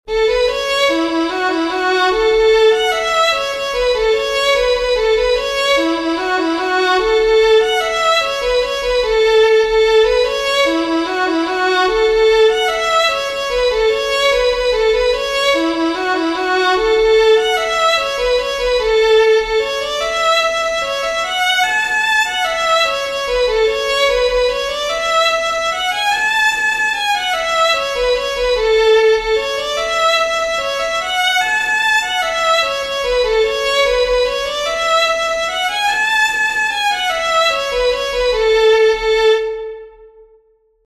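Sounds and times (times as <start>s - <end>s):
fiddlers playing a jig: 0.0s - 39.6s.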